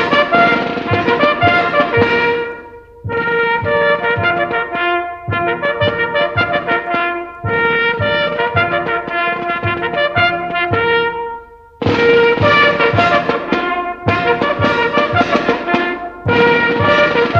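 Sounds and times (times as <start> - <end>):
band playing: 0.0 - 17.3.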